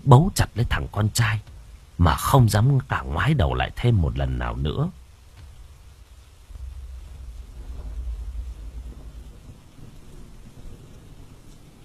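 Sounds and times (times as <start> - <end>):
speech: 0.0 - 5.0
rain: 0.0 - 11.8
thunder: 5.4 - 11.8.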